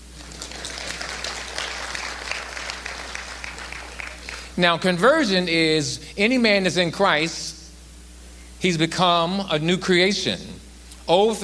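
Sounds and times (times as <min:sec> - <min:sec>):
audience clapping: 0:00.0 - 0:04.6
speech: 0:04.6 - 0:07.5, 0:08.6 - 0:11.4.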